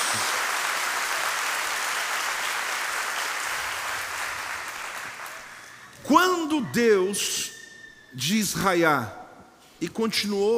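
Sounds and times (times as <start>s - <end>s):
sustained applause from a large audience: 0.0s - 5.9s
speech: 0.1s - 0.4s, 6.1s - 7.5s, 8.2s - 9.2s, 9.8s - 10.5s.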